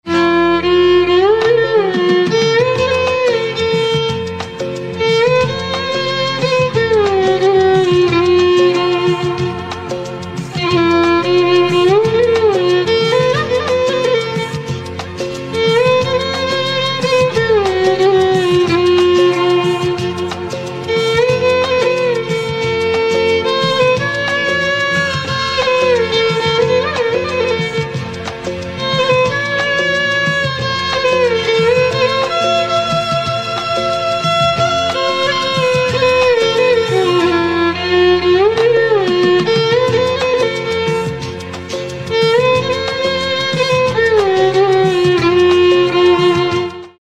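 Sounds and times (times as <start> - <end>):
violin: 0.0 - 47.0.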